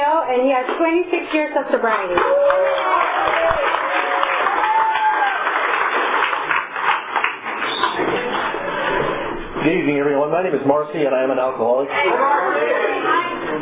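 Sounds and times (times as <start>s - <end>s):
speech: 0.3s - 3.4s, 9.6s - 13.6s
audience applause: 1.8s - 8.7s.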